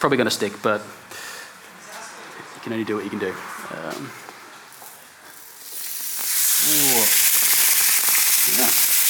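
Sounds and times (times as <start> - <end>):
speech: 0.0 - 1.2, 2.6 - 4.2
thin fish fillet frying in a hot pan: 5.4 - 9.0.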